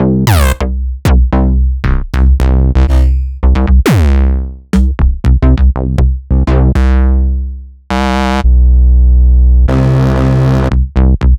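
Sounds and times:
basses: 0:00.0 - 0:11.3.

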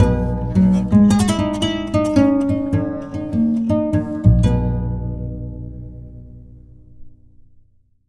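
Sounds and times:
kora playing: 0:00.0 - 0:06.9.

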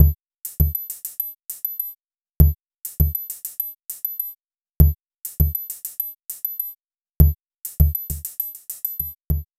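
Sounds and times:
cicada kick electronic beat: 0:00.0 - 0:00.8, 0:02.4 - 0:03.2, 0:04.8 - 0:05.6, 0:07.2 - 0:08.3, 0:09.0 - 0:09.5.

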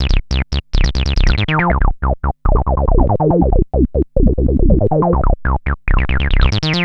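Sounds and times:
industrial analog loop: 0:00.0 - 0:06.8.

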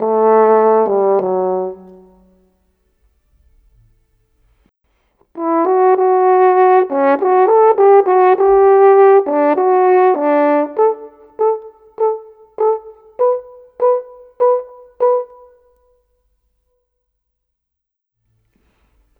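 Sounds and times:
orchestral horn in rock pop style: 0:00.0 - 0:02.3, 0:05.4 - 0:15.7.

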